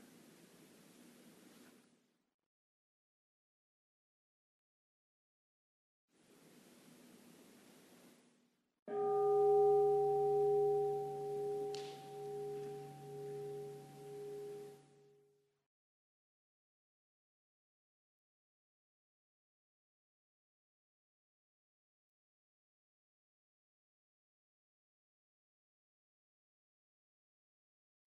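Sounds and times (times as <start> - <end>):
meditation bell ringing: 8.9 - 15.2.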